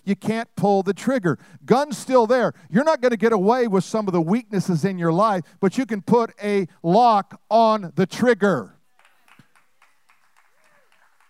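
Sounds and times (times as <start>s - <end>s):
speech: 0.1s - 8.8s
audience applause with women clapping: 9.0s - 11.2s.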